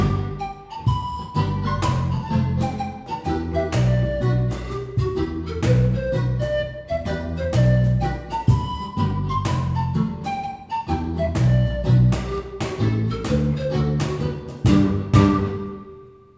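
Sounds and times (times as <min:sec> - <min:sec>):
reggae music: 0:00.0 - 0:16.2.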